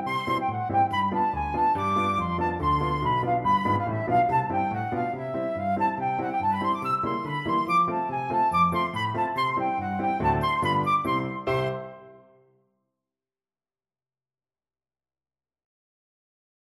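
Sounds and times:
flute: 0.0s - 12.4s.

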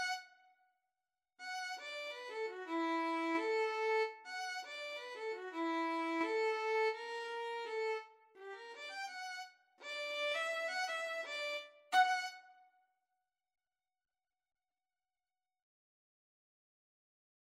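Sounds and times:
violin and viola duet: 0.0s - 0.3s, 1.4s - 12.5s.

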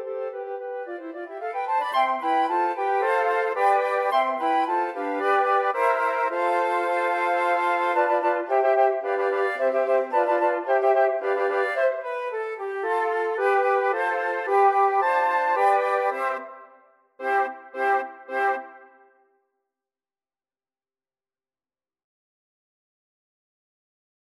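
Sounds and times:
flute quartet: 0.0s - 19.1s.

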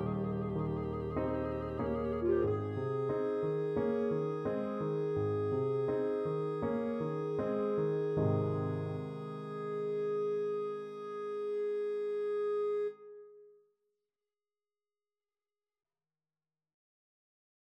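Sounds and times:
clarinet nocturne: 0.0s - 13.6s.

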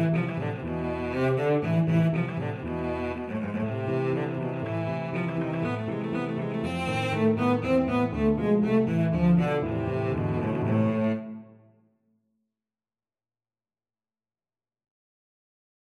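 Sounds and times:
cello: 0.0s - 11.8s.

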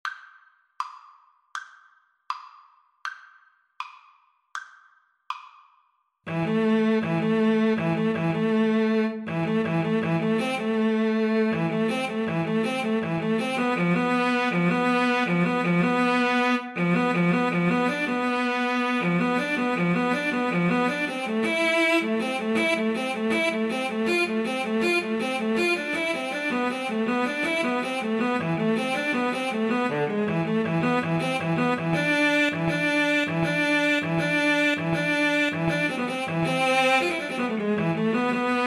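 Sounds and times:
cello duet: 6.3s - 38.6s.

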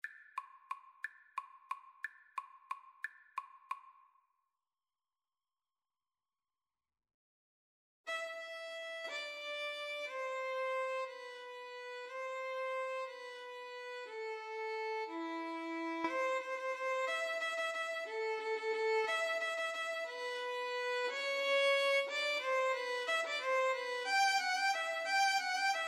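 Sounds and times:
violin: 8.1s - 25.8s.

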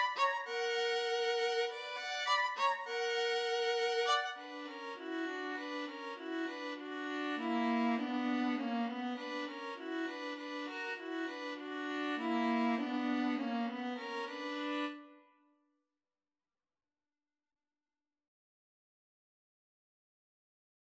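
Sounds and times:
string trio playing: 0.0s - 15.0s.

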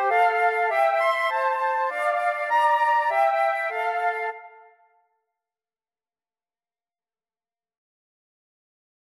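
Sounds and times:
clarinet: 0.0s - 5.0s
flutes: 0.0s - 5.1s.

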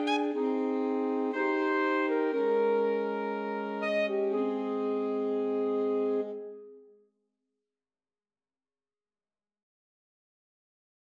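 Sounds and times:
alto saxophone trio playing a romance: 0.0s - 6.7s.

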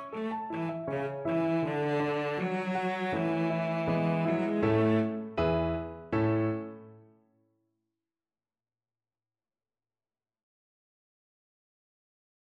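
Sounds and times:
violoncello: 0.0s - 6.7s.

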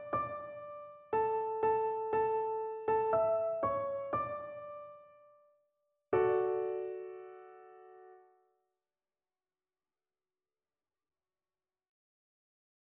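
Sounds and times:
piano duet: 0.0s - 5.4s, 6.2s - 8.3s.

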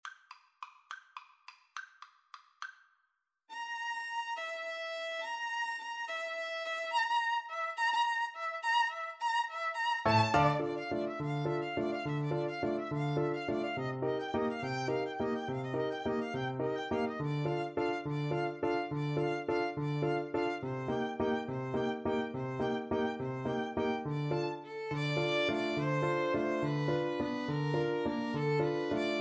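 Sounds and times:
violin: 3.5s - 29.1s
piano: 10.0s - 29.1s.

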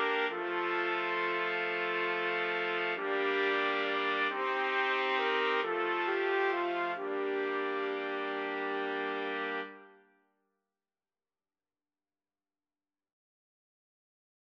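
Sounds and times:
trumpets playing: 0.0s - 10.0s.

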